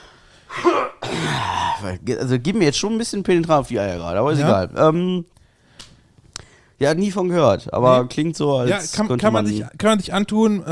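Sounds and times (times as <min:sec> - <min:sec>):
harsh raspy coughing fit: 0:00.5 - 0:02.0
speech: 0:00.6 - 0:05.3, 0:06.8 - 0:10.6.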